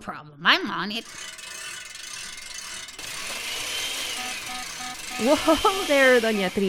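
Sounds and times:
speech: 0.0 - 1.4, 5.2 - 6.6
hand crank turning a blender: 1.0 - 6.6.

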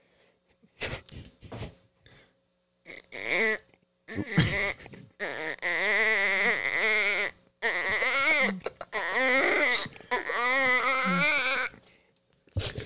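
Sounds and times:
voice imitating a duck call: 2.9 - 11.7.

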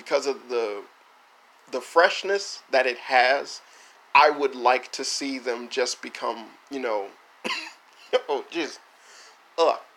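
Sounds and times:
speech: 0.1 - 1.0, 1.7 - 8.8, 9.6 - 9.9
person clearing throat after a hair stuck in it: 7.5 - 7.8.

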